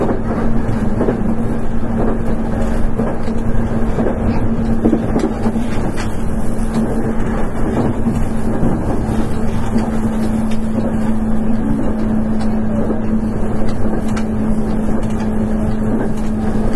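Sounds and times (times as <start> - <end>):
Nankai 8300 series electric airport express train running rumble: 0.0 - 16.7.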